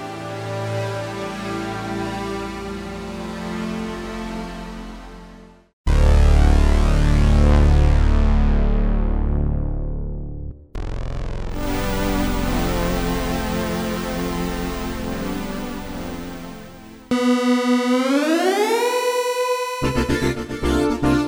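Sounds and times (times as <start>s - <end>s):
Manx synthesizer sounds: 5.9s - 21.2s.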